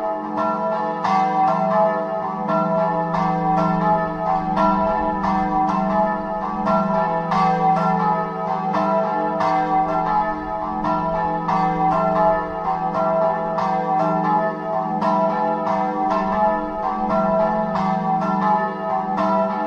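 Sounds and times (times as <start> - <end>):
church bells ringing: 0.0 - 19.6.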